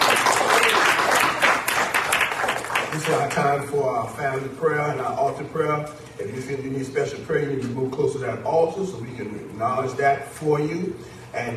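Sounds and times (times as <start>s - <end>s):
crowd clapping: 0.0s - 3.5s
speech: 3.0s - 11.5s.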